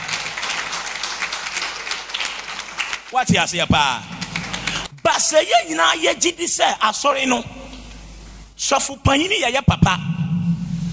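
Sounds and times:
audience clapping: 0:00.0 - 0:05.5
speech: 0:03.1 - 0:04.1, 0:05.1 - 0:07.6, 0:08.6 - 0:10.2.

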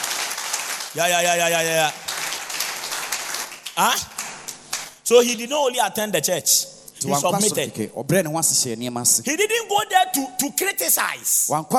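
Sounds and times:
crowd clapping: 0:00.0 - 0:05.0
speech: 0:00.9 - 0:02.0, 0:03.8 - 0:04.1, 0:05.1 - 0:11.7.

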